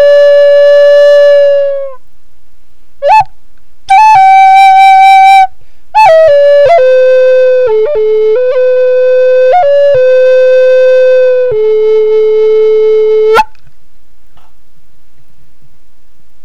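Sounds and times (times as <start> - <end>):
flutes: 0.0 - 2.0, 3.0 - 13.6.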